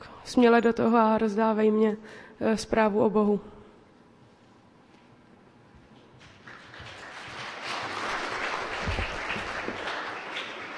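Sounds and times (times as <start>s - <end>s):
speech: 0.3s - 3.6s
audience applause: 6.3s - 10.7s.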